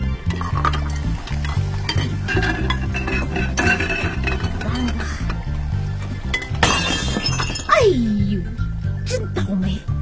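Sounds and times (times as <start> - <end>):
music with a stepping bass line: 0.0 - 9.9
dishes clinking and clattering while being washed: 0.3 - 5.6, 6.2 - 7.8.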